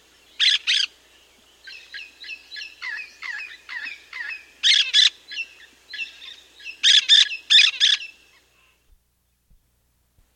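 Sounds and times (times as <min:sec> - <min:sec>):
Olive-throated parakeet calling in South America: 0:00.4 - 0:00.9, 0:02.6 - 0:08.1.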